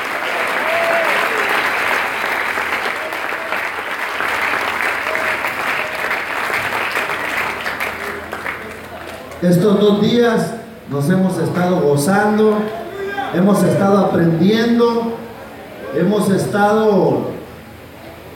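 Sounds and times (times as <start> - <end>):
crowd applause: 0.0 - 9.8
speech: 9.4 - 15.2, 15.9 - 17.3.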